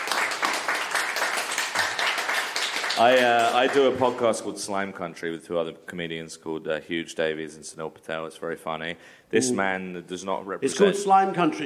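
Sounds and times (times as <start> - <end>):
audience applause: 0.0 - 4.2
speech: 3.0 - 11.6.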